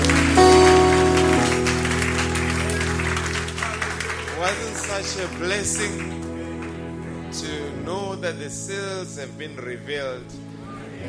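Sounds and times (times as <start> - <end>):
audience applause: 0.0 - 7.4
sustained organ-like musical tones: 0.0 - 11.0
speech: 4.5 - 6.2, 7.3 - 11.0.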